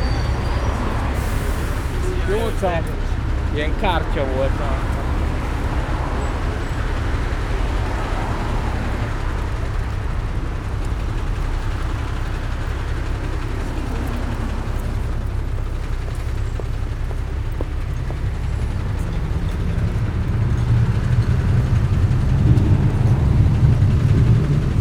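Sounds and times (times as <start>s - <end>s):
long-distance intercity bus arriving: 0.0s - 24.7s.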